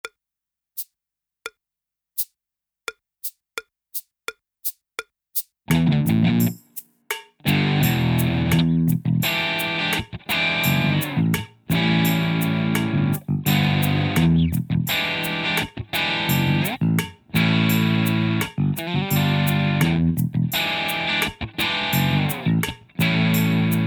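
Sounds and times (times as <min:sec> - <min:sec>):
backing drums: 0:05.4 - 0:23.8.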